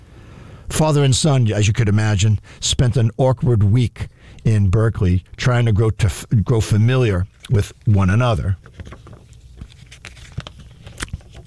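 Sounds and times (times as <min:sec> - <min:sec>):
faint hiss: 0:00.0 - 0:11.4
speech: 0:00.7 - 0:09.0
book pages turning: 0:07.2 - 0:11.4.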